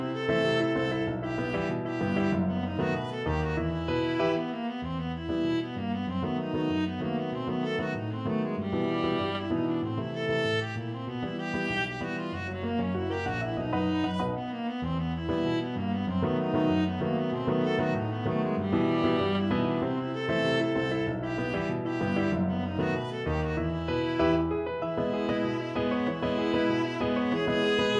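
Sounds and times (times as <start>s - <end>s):
viola playing: 0.0s - 27.9s.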